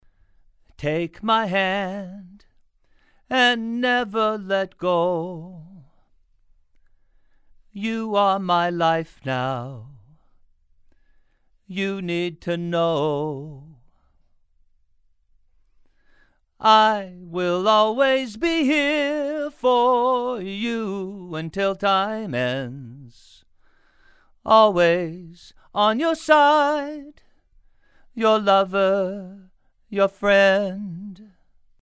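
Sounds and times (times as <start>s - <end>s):
male vocals: 0.6s - 6.2s, 7.6s - 10.4s, 11.6s - 14.2s, 16.5s - 23.6s, 24.3s - 31.5s.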